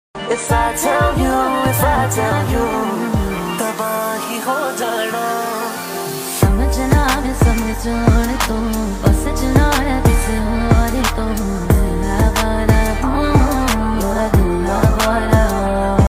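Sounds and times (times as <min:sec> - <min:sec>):
AI remix trap Punjabi ringtone: 0:00.2 - 0:16.0.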